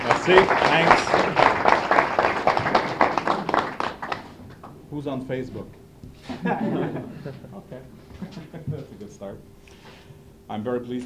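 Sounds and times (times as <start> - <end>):
laughter: 0.0 - 4.4, 6.2 - 9.1
audience applause: 0.0 - 4.8
speech: 0.1 - 1.4, 5.0 - 5.8, 6.4 - 9.6, 10.5 - 11.0.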